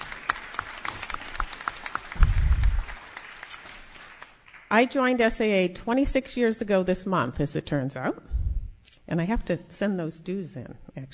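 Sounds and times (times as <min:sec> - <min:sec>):
audience round of applause: 0:00.0 - 0:04.7
speech: 0:04.7 - 0:08.3, 0:09.1 - 0:11.1.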